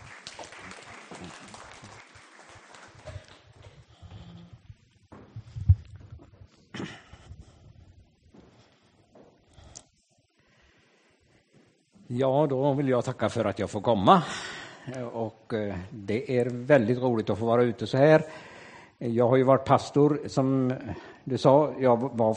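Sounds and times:
warm applause for the speaker: 0.0s - 3.9s
speech: 12.1s - 22.3s.

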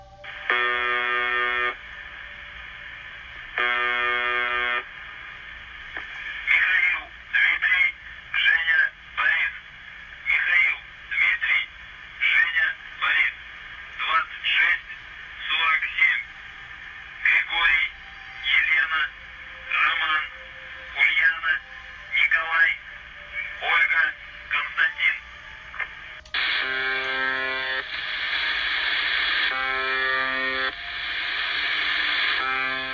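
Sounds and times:
faint shortwave radio static: 0.0s - 32.9s
UVB-76 shortwave station buzzer tones: 0.2s - 1.8s, 3.6s - 4.9s, 26.6s - 27.9s, 29.2s - 31.2s, 31.8s - 32.9s.

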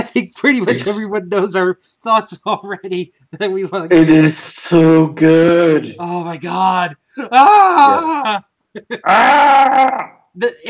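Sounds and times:
speech: 0.2s - 10.6s
voice imitating a Wookiee growling scream: 7.4s - 8.3s, 9.0s - 10.2s.

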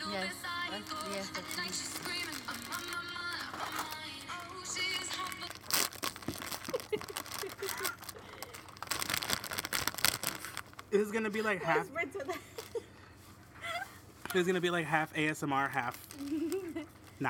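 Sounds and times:
plastic bags crinkling and rustling: 0.0s - 11.2s, 12.4s - 12.9s, 15.5s - 17.2s
speech: 0.8s - 3.8s, 10.9s - 12.5s, 14.3s - 16.5s.

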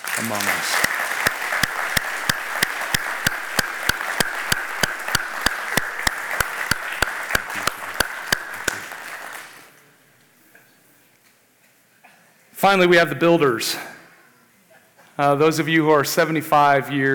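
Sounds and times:
church audience applause: 0.0s - 9.7s
speech: 0.2s - 1.0s, 12.6s - 13.9s, 15.2s - 17.1s.

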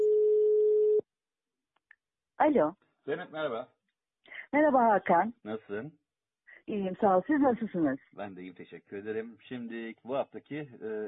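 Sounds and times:
telephone line connecting dial tone: 0.0s - 1.0s
speech: 2.4s - 3.8s, 4.5s - 6.0s, 6.7s - 11.0s.

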